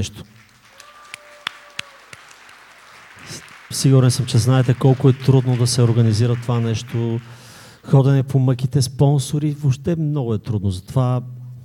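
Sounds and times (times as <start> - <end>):
speech: 0.0 - 0.4, 3.7 - 11.4
scattered handclaps from an audience at a jazz festival: 0.0 - 7.4.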